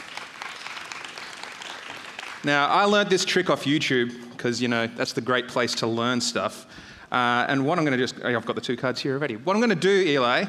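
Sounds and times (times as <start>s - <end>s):
audience clapping: 0.0s - 3.4s
speech: 2.4s - 10.4s.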